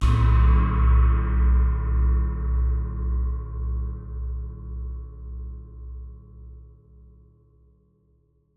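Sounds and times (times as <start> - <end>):
gong: 0.0 - 6.6.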